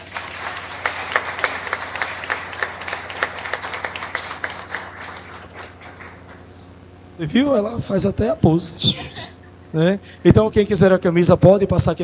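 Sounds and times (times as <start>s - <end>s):
round of applause: 0.0s - 7.2s
laughter: 0.0s - 10.8s
speech: 7.2s - 12.0s.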